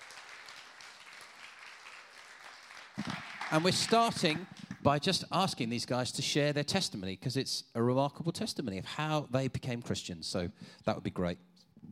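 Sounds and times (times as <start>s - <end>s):
audience applause: 0.0s - 4.8s
speech: 3.5s - 11.5s.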